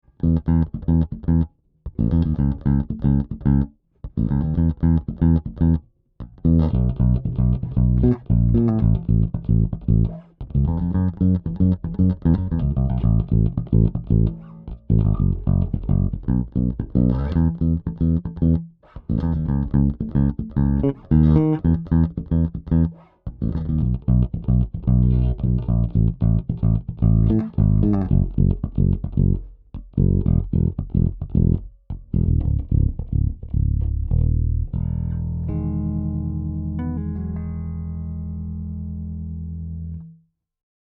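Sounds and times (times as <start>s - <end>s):
L-2500 fingerpicked guitar: 0.1s - 40.2s.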